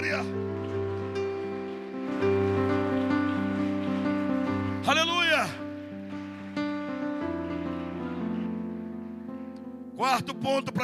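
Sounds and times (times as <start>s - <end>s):
audience applause: 0.0s - 9.5s
speech: 10.2s - 10.8s.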